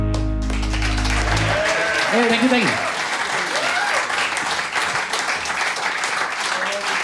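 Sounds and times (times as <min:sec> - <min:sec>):
crowd applause: 0:00.1 - 0:07.0
scattered cheers and voices: 0:01.3 - 0:04.1
speech: 0:02.1 - 0:02.9.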